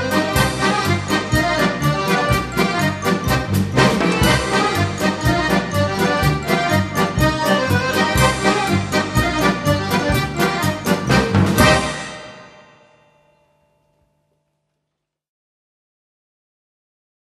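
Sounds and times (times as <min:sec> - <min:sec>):
accordion orchestra playing a Karelian-Finnish polka: 0:00.0 - 0:12.6.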